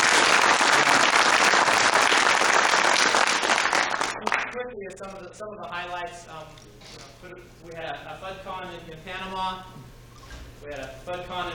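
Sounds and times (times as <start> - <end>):
audience applause: 0.0 - 4.5
speech: 5.0 - 9.8, 10.6 - 11.5.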